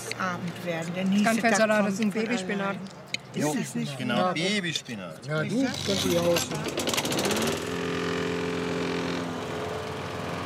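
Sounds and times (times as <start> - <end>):
speech: 0.2 - 7.4
neighbor's lawn mower engine droning: 5.7 - 10.4.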